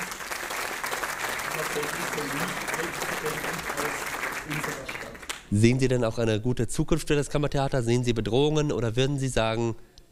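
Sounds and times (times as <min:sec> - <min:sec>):
audience applause: 0:00.0 - 0:05.5
speech: 0:01.6 - 0:09.9.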